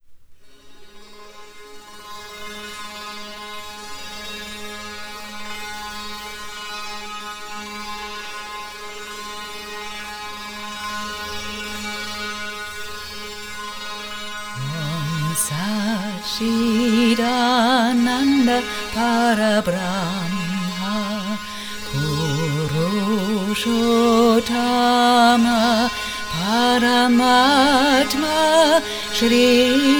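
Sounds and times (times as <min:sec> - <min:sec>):
mantra chant: 0:14.6 - 0:29.9.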